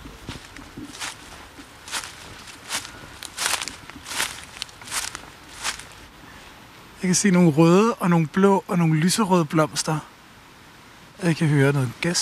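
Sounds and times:
footsteps walking into garden undergrowth: 0.0 - 6.2
soft hiss: 0.0 - 12.2
speech: 7.0 - 10.1, 11.2 - 12.2.

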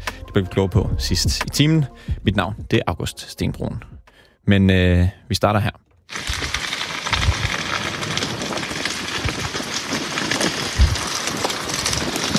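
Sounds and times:
speech: 0.4 - 6.3
wildfire burning on a forest floor south of Paris: 6.1 - 12.3.

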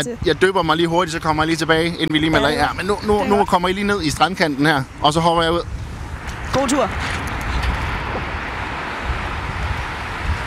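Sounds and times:
speech: 0.0 - 5.8, 6.6 - 7.3
sea waves breaking on the beach: 5.8 - 10.4.

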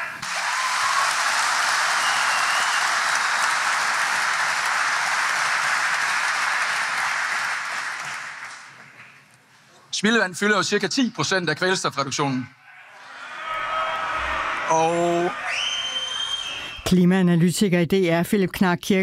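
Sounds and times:
audience cheering and applause: 0.2 - 9.0, 12.8 - 16.8
speech: 10.0 - 12.6, 16.9 - 19.0.

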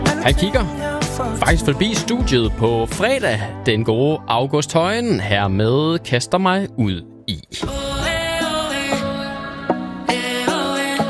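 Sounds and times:
upbeat pop music: 0.0 - 4.0, 7.3 - 11.0
speech: 0.2 - 7.8.

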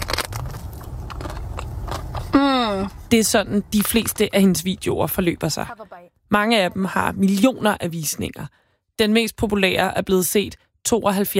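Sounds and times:
woman eating whipped-cream cakes bite by bite: 0.0 - 2.4
speech: 2.4 - 11.3.

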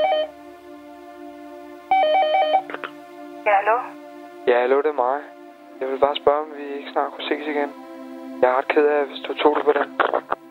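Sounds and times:
telephone ringing at start of song: 0.0 - 0.3, 1.9 - 2.6
steady tonal hum: 0.0 - 10.3
speech: 3.5 - 7.8, 8.4 - 10.3.

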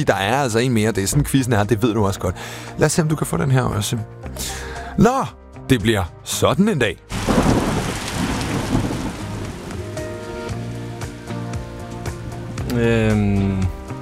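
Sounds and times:
speech: 0.0 - 7.2, 12.7 - 13.8
thunderclap during a rainstorm: 7.1 - 10.2.

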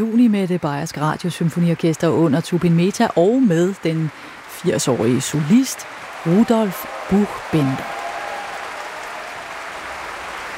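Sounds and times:
speech: 0.0 - 8.0
concert audience applause for a pianist in Munich: 4.1 - 10.5.

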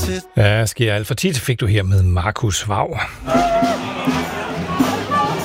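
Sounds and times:
speech: 0.1 - 4.9
murmur of many voices at a street party of new graduates in Esbjerg: 3.2 - 5.4
people shouting at a street party of new graduates in Esbjerg: 3.2 - 5.4.

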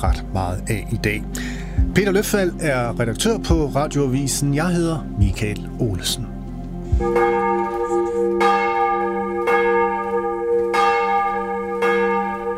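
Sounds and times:
speech: 0.0 - 6.3, 7.0 - 7.4
church bells ringing for morning service: 6.9 - 12.5.

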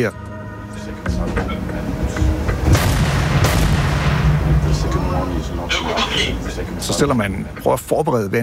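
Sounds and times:
speech: 0.0 - 2.3, 4.8 - 8.4
loud hum: 0.0 - 8.0
frigate's large gun firing a shell: 2.7 - 4.6.

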